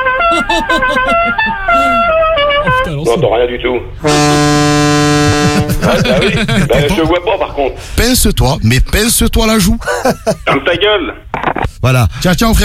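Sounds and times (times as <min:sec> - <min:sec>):
car horn honking: 0:00.0 - 0:03.1, 0:04.0 - 0:06.2
laughter: 0:00.2 - 0:02.1, 0:05.1 - 0:07.4, 0:09.8 - 0:10.8
speech: 0:00.6 - 0:02.2, 0:02.9 - 0:04.7, 0:05.5 - 0:12.6.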